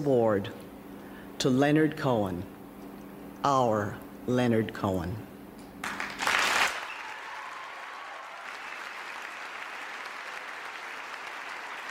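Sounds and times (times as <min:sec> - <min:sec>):
speech: 0:00.0 - 0:00.7, 0:01.4 - 0:02.6, 0:03.4 - 0:05.3
crowd giving a standing ovation: 0:05.8 - 0:11.8.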